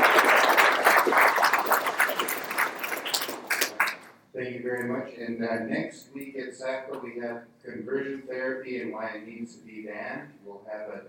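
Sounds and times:
audience applause: 0.0 - 4.1
speech: 4.8 - 11.0.

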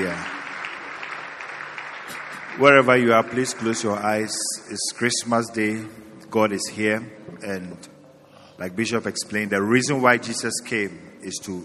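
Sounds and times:
speech: 0.0 - 0.4, 2.6 - 8.0, 8.6 - 11.6
audience clapping: 0.0 - 4.4.

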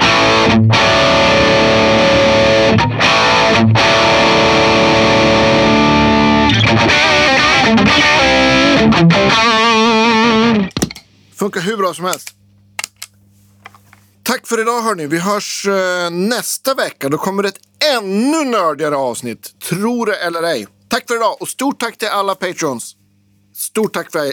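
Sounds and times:
heavily distorted electric guitar with rhythm boost engaged: 0.0 - 10.8
speech: 0.6 - 1.0, 11.4 - 12.4, 14.3 - 23.0, 23.6 - 24.3.

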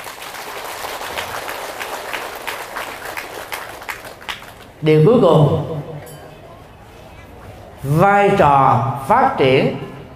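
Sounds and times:
loud applause: 0.0 - 4.8
speech: 4.8 - 5.9, 7.8 - 9.9.

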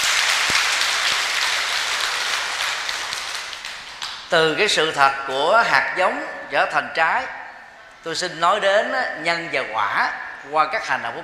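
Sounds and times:
audience applause: 0.0 - 4.3
speech: 4.3 - 7.4, 8.0 - 11.2.

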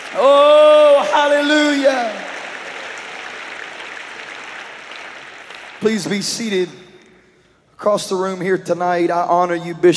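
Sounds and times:
audience clapping: 0.0 - 7.1
speech: 0.1 - 2.2, 5.8 - 6.8, 7.8 - 9.9.

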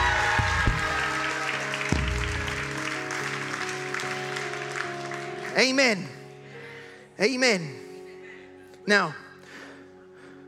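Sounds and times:
audience shouting: 0.0 - 1.9
audience clapping: 0.0 - 6.0
speech: 5.6 - 6.2, 7.2 - 7.8, 8.8 - 9.2.

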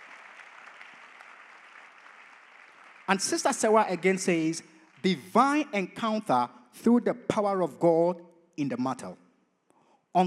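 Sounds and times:
audience clapping hands: 0.0 - 5.6
speech: 3.1 - 9.2.

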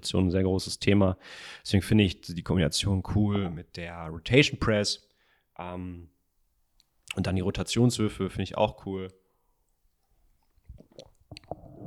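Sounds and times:
speech: 0.0 - 6.2, 7.1 - 9.2
someone gulping a drink while recording: 10.4 - 11.8.

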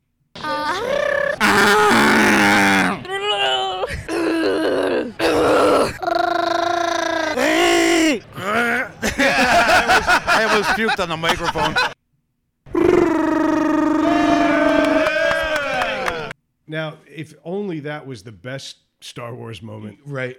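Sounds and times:
human voice imitating Wookiee growls: 0.4 - 9.0, 12.7 - 15.1
laughter: 8.4 - 12.0
speech: 10.4 - 12.0, 16.7 - 20.3.

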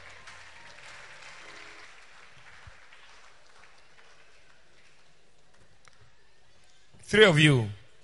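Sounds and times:
crowd applauding: 0.0 - 5.3
speech: 7.1 - 7.8.

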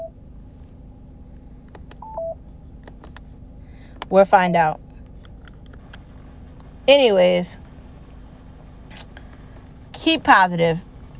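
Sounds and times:
low steady hum: 0.0 - 11.1
electronic telephone beeps: 2.0 - 2.4
speech: 4.1 - 4.8, 6.9 - 7.6, 10.1 - 10.9.

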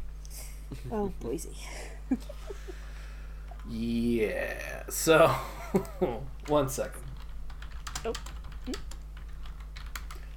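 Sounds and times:
steady low hum: 0.0 - 10.3
speech: 0.7 - 2.8, 3.7 - 7.0, 8.0 - 8.9
typing on a computer keyboard: 6.4 - 10.2.

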